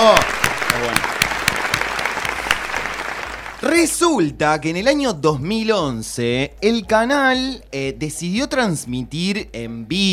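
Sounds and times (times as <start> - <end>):
applause: 0.0 - 3.7
speech: 3.6 - 10.1.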